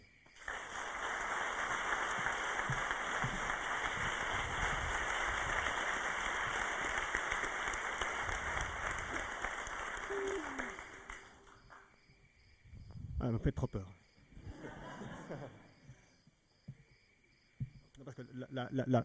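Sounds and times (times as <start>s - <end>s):
large crowd applauding: 0.0s - 11.8s
laughter: 6.4s - 11.3s, 14.4s - 15.8s
speech: 13.4s - 14.0s, 15.3s - 15.7s, 18.2s - 19.0s.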